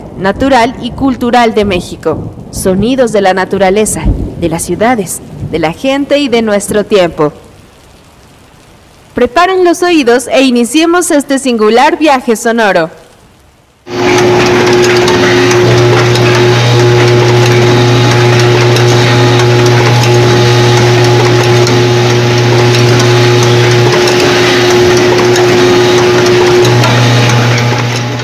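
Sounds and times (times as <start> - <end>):
speech: 0.2 - 7.4, 9.2 - 13.0
automatic machine in a Tijuana factory: 13.9 - 28.2.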